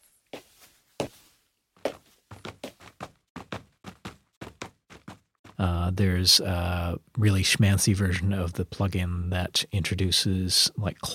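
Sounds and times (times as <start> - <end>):
sampled shoe footsteps on a hard surface: 0.0 - 5.6
speech: 5.6 - 11.1.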